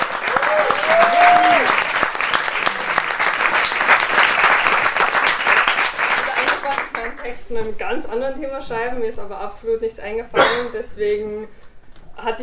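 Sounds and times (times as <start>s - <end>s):
audience applause: 0.0s - 7.3s
speech: 7.5s - 11.6s, 12.2s - 12.4s.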